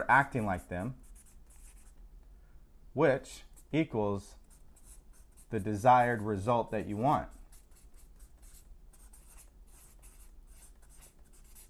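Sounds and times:
speech: 0:00.0 - 0:01.1, 0:02.9 - 0:04.4, 0:05.5 - 0:07.4
pen drawing a little star on paper: 0:00.3 - 0:02.0, 0:04.4 - 0:11.6.

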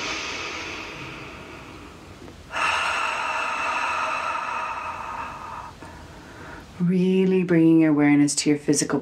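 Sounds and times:
deep breath in through the nose and out through the mouth during a guided meditation: 0:00.0 - 0:06.8
speech: 0:06.8 - 0:08.9.

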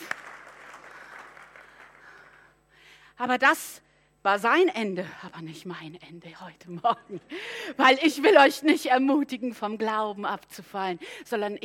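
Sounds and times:
audience applause: 0:00.0 - 0:02.4
speech: 0:03.2 - 0:11.6.

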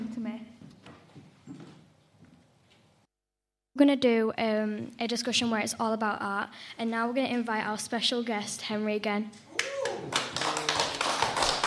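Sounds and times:
speech: 0:03.8 - 0:10.3
audience clapping: 0:09.6 - 0:11.6.

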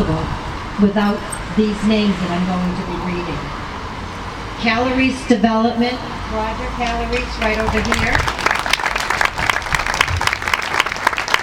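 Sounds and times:
speech: 0:00.0 - 0:03.6, 0:04.6 - 0:08.4
audience applause: 0:07.4 - 0:11.4.

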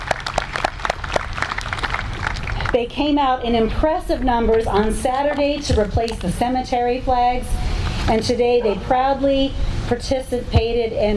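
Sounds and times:
audience applause: 0:00.0 - 0:02.8
speech: 0:02.8 - 0:11.1.

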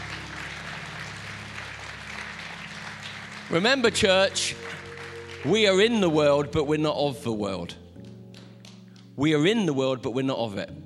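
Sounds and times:
audience applause: 0:00.0 - 0:06.2
speech: 0:03.5 - 0:04.8, 0:05.4 - 0:07.8, 0:09.2 - 0:10.8.

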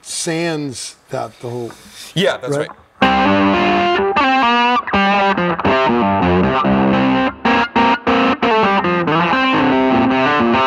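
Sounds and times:
speech: 0:00.2 - 0:07.4
electric guitar through a Maxon SD9 distortion pedal: 0:02.7 - 0:10.6.

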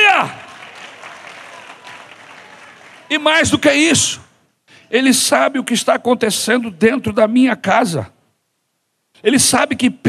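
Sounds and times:
crowd applause: 0:00.0 - 0:03.4
speech: 0:03.1 - 0:04.2, 0:04.9 - 0:08.2, 0:09.2 - 0:10.0.

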